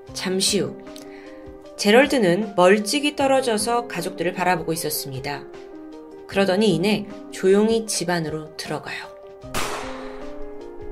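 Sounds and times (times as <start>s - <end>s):
speech: 0.1s - 1.0s, 1.8s - 5.7s, 6.3s - 9.1s
gunshot: 9.5s - 10.4s.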